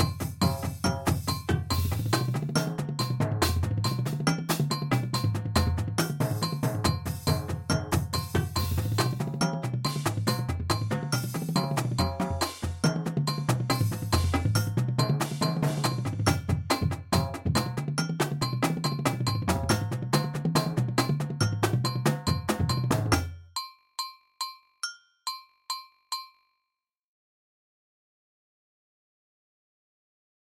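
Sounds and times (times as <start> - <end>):
drumline playing at 140 bpm: 0.0 - 23.2.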